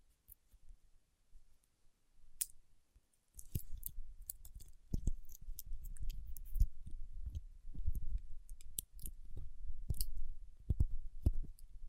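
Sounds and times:
fingertips rubbing and pressing wax: 3.4s - 11.6s.

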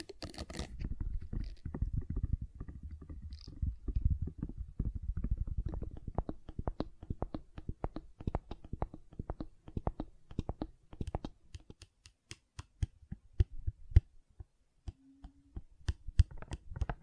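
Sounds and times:
gentle silicone squishing and rubbing: 0.0s - 14.0s
sharp little clicks and taps: 0.0s - 17.0s
brief faint tone: 15.0s - 15.6s.

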